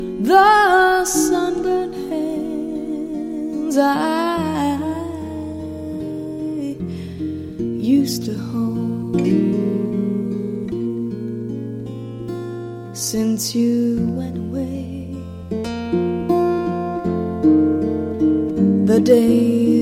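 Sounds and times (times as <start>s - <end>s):
acoustic music: 0.0s - 19.8s.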